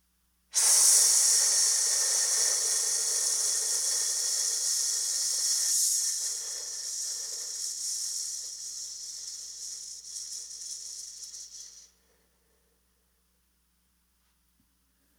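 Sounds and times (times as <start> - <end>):
slow controlled breathing during a paced exercise: 0.6 - 12.8.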